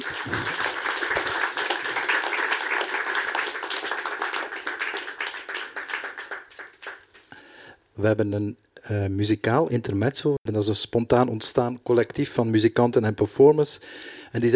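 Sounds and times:
audience applause: 0.0 - 7.3
speech: 8.0 - 14.5.

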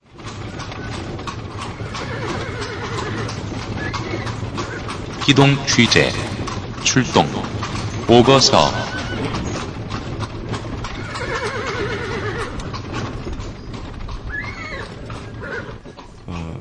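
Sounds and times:
hooves clattering: 0.0 - 16.6
ox-drawn cart wheels rumbling and clattering: 0.0 - 16.6
horse whinnying: 0.8 - 5.7, 8.6 - 9.9, 10.5 - 16.6
speech: 5.3 - 6.2, 6.8 - 7.5, 8.1 - 9.4.

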